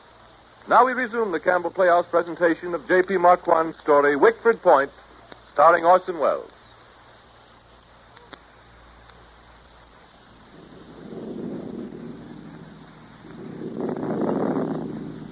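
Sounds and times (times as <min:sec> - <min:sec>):
speech: 0:00.7 - 0:05.0, 0:05.6 - 0:06.5
wind rising before a thunderstorm: 0:09.6 - 0:15.3.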